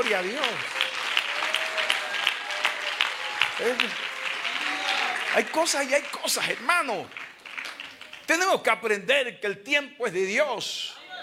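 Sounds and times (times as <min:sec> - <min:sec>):
speech: 0:00.0 - 0:00.8, 0:03.6 - 0:04.1, 0:05.3 - 0:07.2, 0:08.3 - 0:11.0
audience applauding: 0:00.0 - 0:08.4.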